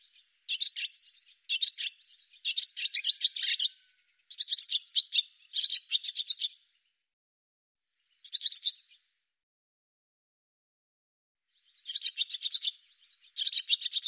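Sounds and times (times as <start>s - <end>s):
barn swallow twittering: 0.0s - 6.6s, 8.2s - 9.0s, 11.5s - 14.0s.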